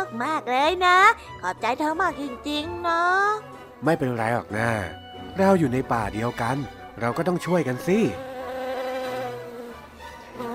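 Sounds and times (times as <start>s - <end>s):
speech: 0.1s - 8.3s
bees buzzing around a mango tree where they build their nest: 7.6s - 10.5s.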